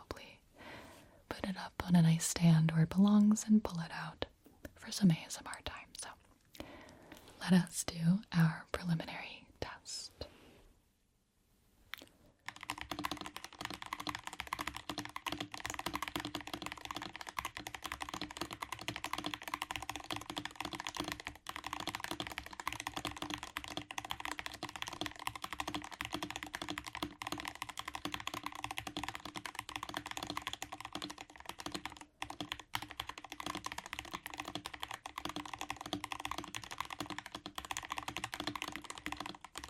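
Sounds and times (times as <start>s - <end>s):
speech: 1.5s - 4.1s, 4.9s - 5.7s, 7.5s - 9.2s
speed typing on a computer keyboard: 12.5s - 39.6s.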